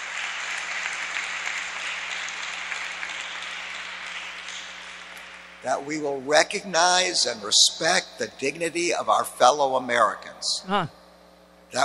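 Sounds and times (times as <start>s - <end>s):
audience applause: 0.0s - 5.2s
speech: 5.6s - 11.0s.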